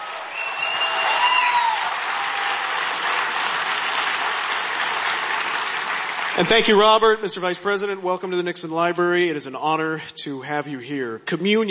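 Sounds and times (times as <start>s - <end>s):
audience applauding the Vice President of the United States at the Nixon Library: 0.0s - 6.9s
speech: 6.4s - 11.6s.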